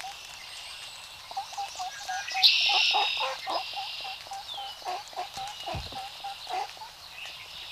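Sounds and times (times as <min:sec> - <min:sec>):
shoveler duck calling: 0:01.6 - 0:06.9.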